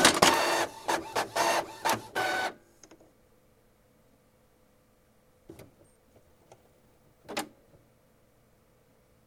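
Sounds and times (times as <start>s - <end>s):
printer printing fast: 0.0s - 2.6s.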